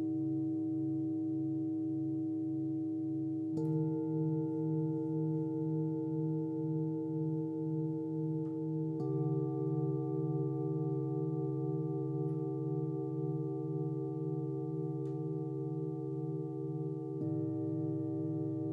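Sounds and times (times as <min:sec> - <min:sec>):
background singing bowls: 0:00.0 - 0:18.7.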